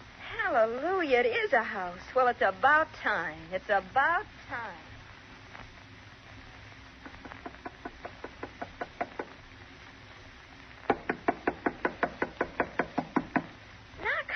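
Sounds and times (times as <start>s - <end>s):
speech: 0.5s - 4.9s
knuckles knocking on a wooden door: 7.1s - 9.4s, 10.9s - 13.6s.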